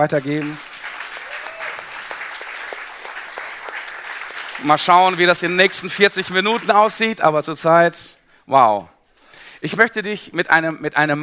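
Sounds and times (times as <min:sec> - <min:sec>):
speech: 0:00.0 - 0:00.7, 0:04.6 - 0:08.9, 0:09.6 - 0:11.2
spontaneous applause: 0:00.0 - 0:06.4.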